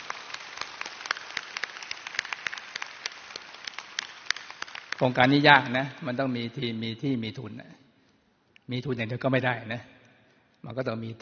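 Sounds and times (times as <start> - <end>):
loud applause: 0.0 - 5.7
speech: 5.0 - 7.8, 8.7 - 9.9, 10.6 - 11.2.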